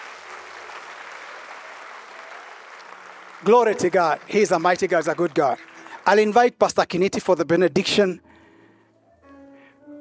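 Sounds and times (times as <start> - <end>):
audience clapping hands: 0.0 - 7.4
speech: 3.4 - 8.3.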